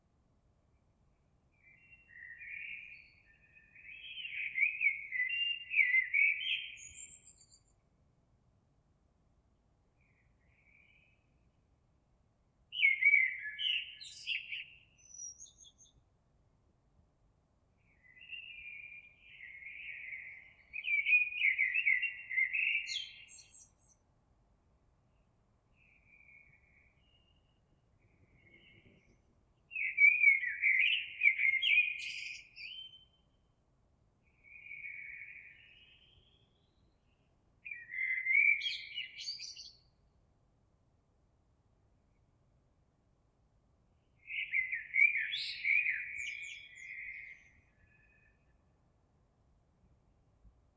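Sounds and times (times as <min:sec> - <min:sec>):
Eurasian blackbird song: 0:00.7 - 0:08.0, 0:09.9 - 0:11.6, 0:12.6 - 0:16.2, 0:17.7 - 0:24.1, 0:25.0 - 0:33.6, 0:34.2 - 0:40.1, 0:43.8 - 0:50.7.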